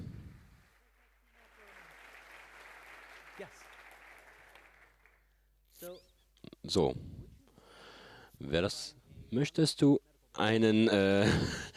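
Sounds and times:
round of applause: 0:00.6 - 0:05.4
speech: 0:03.4 - 0:03.7, 0:05.8 - 0:07.1, 0:08.4 - 0:11.7.

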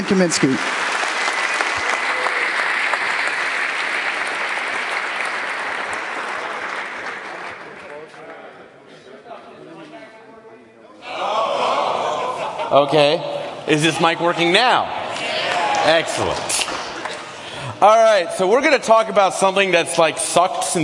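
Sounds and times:
large audience applause: 0:00.0 - 0:08.6, 0:14.6 - 0:18.2
crowd noise: 0:00.0 - 0:20.8
speech: 0:00.1 - 0:01.0, 0:12.7 - 0:15.0, 0:15.8 - 0:16.8, 0:17.8 - 0:20.8
laughter: 0:11.1 - 0:14.5.

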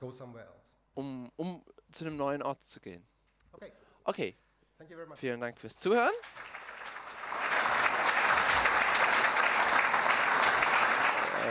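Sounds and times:
speech: 0:00.0 - 0:06.6
audience applause: 0:06.1 - 0:11.4.

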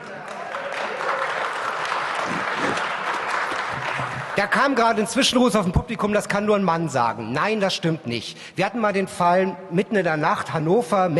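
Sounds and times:
audience applause: 0:00.0 - 0:04.6
speech: 0:04.4 - 0:11.1.

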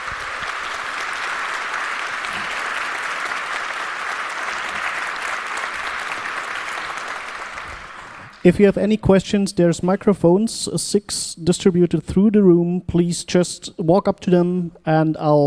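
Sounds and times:
crowd applauding: 0:00.0 - 0:08.5
speech: 0:08.4 - 0:15.4.

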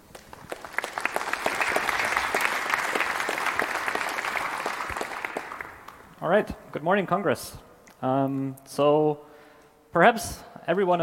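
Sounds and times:
audience applause: 0:00.0 - 0:06.2
speech: 0:06.2 - 0:09.3, 0:10.0 - 0:11.0.

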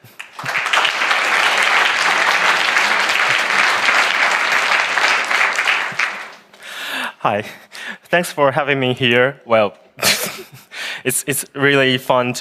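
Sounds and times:
crowd applause: 0:00.0 - 0:06.9
speech: 0:07.2 - 0:10.2, 0:11.0 - 0:12.3.

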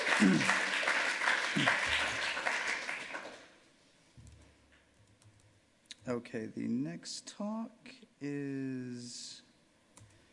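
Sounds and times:
crowd applauding: 0:00.0 - 0:03.5
speech: 0:00.2 - 0:00.6, 0:06.3 - 0:09.4.

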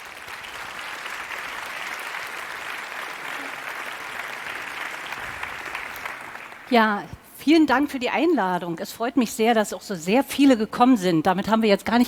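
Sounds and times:
audience applause for speakers: 0:00.0 - 0:06.7
speech: 0:06.7 - 0:12.0.

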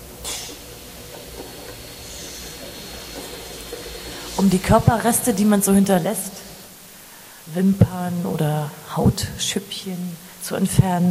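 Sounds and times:
mini vacuum cleaner: 0:00.0 - 0:06.7
speech: 0:04.4 - 0:06.4, 0:07.6 - 0:11.1.

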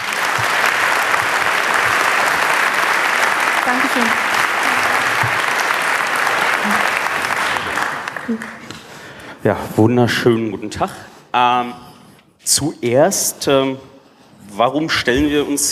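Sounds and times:
audience applause: 0:00.0 - 0:09.0
speech: 0:03.7 - 0:04.3, 0:08.3 - 0:08.5, 0:09.4 - 0:11.8, 0:12.4 - 0:13.9, 0:14.6 - 0:15.7.

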